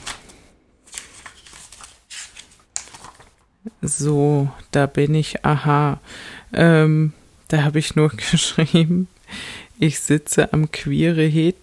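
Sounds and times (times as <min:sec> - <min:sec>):
paper rustling as a small notebook is opened: 0:00.0 - 0:03.5
speech: 0:03.7 - 0:11.6.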